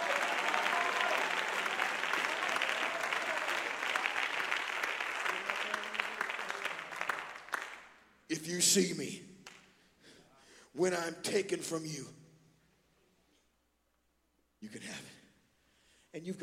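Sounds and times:
audience clapping hands: 0.0 - 8.1, 9.4 - 9.8
speech: 8.4 - 9.3, 10.8 - 12.2, 16.2 - 16.4.

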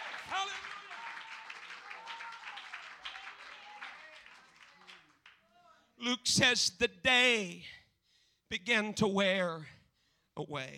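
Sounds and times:
crowd clapping: 0.0 - 5.6
speech: 6.0 - 7.8, 8.5 - 9.8, 10.4 - 10.7.

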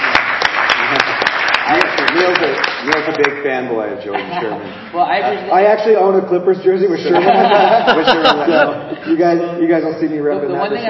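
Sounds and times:
round of applause: 0.0 - 3.6
speech: 2.9 - 10.8
laughter: 4.0 - 4.9, 6.9 - 10.0.

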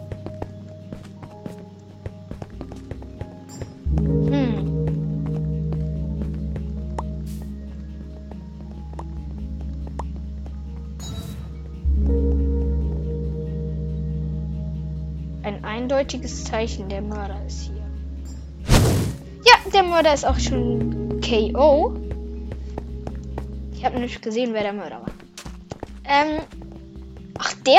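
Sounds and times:
player sprinting footsteps in Minecraft video game: 0.0 - 11.9, 18.7 - 27.7
steady tone: 0.0 - 27.7
speech: 15.9 - 17.7, 19.7 - 22.0, 23.8 - 25.1, 26.1 - 26.6.

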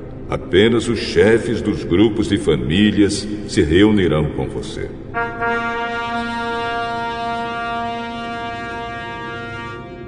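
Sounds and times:
speech: 0.3 - 6.0
single loud brassy trumpet blast: 5.2 - 10.0.

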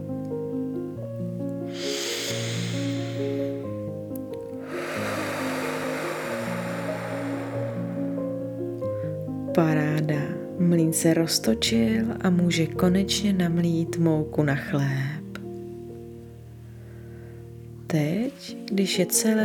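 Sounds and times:
soft, sustained music: 0.0 - 19.4
slow exhale blowing out through mouth: 1.7 - 9.0
speech: 9.6 - 15.2, 17.9 - 19.4.

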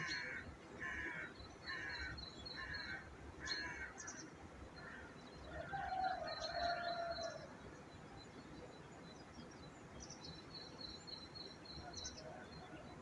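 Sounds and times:
crow-like caws: 0.0 - 4.0
rough low background noise: 0.0 - 13.0.

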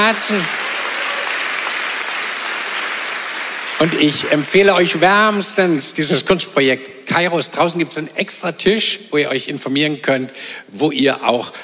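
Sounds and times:
speech: 0.0 - 0.6, 3.8 - 11.6
audience applause: 0.0 - 5.0.

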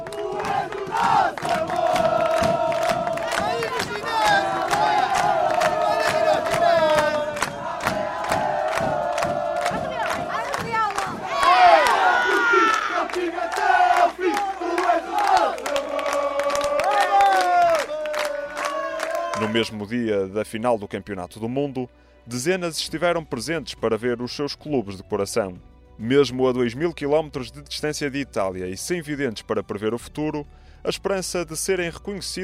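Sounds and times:
stadium crowd shouting and chanting support: 0.0 - 19.4
speech: 19.6 - 32.4.

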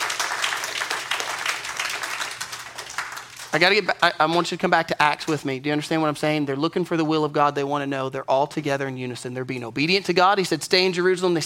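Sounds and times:
crowd clapping: 0.0 - 4.4
speech: 3.6 - 11.4.

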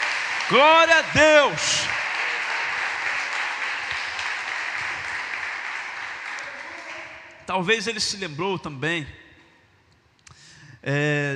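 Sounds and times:
audience applause: 0.0 - 7.3
speech: 0.5 - 2.0, 7.5 - 9.2, 10.8 - 11.3.

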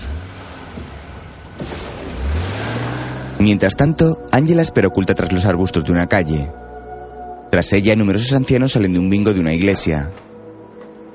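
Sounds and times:
car starting and driving away: 0.0 - 5.8
speech: 3.4 - 6.6, 7.6 - 10.3.

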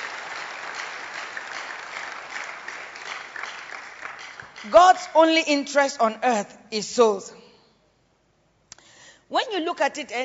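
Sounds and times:
audience clapping: 0.0 - 5.2
speech: 4.6 - 7.4, 9.4 - 10.2.

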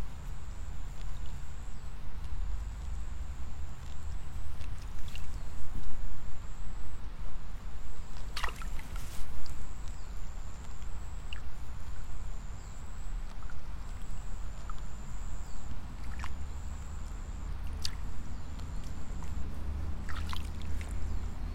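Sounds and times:
high insect-like trill in a rice field: 0.0 - 7.0, 7.6 - 21.5
clicks and splashy snaps of rice seedlings being pulled: 8.3 - 8.9, 17.6 - 18.1, 20.1 - 20.9.

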